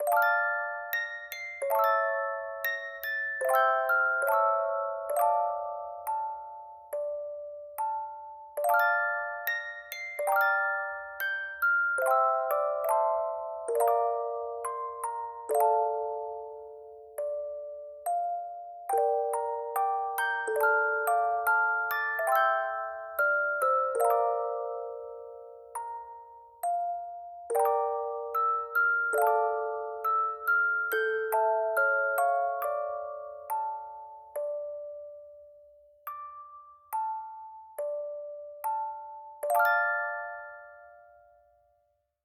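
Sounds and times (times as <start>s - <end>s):
music box: 0.0s - 42.2s.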